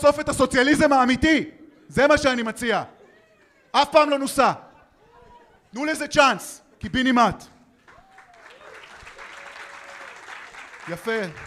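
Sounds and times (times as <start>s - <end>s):
speech: 0.0s - 3.0s, 3.7s - 4.6s, 5.7s - 7.5s, 10.9s - 11.4s
people clapping: 7.7s - 11.4s.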